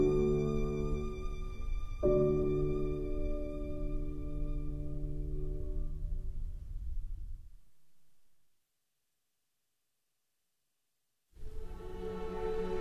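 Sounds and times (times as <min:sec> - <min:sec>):
violin: 0:00.0 - 0:05.5, 0:11.4 - 0:12.7
piano: 0:00.0 - 0:07.6, 0:11.4 - 0:12.7.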